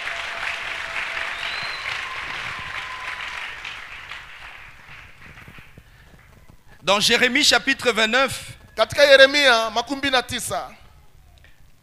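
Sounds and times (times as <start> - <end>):
raised voices of a church congregation cheering: 0.0 - 4.6
church congregation applauding during a bilingual worship service: 0.0 - 6.5
speech: 6.9 - 10.8.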